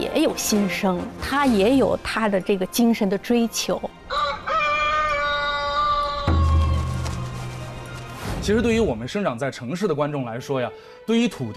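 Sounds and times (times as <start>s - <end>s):
speech: 0.0s - 4.0s, 8.5s - 11.5s
rooster crowing: 4.1s - 7.2s.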